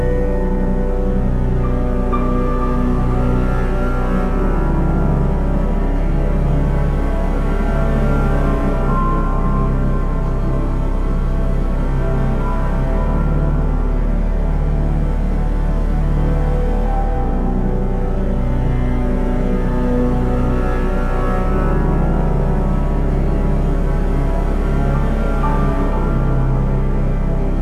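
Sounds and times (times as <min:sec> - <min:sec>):
dungeon background music: 0:00.0 - 0:27.6.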